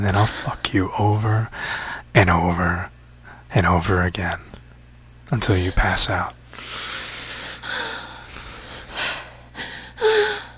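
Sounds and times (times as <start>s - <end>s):
speech: 0.0s - 4.6s, 5.3s - 6.9s
labored heavy breathing: 1.5s - 2.1s, 6.5s - 10.5s.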